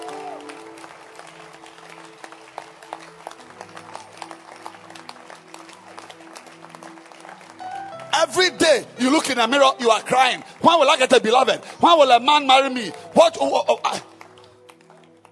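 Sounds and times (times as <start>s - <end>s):
audience clapping hands: 0.0s - 15.3s
sustained low musical chords: 7.6s - 10.0s
speech: 8.2s - 14.1s.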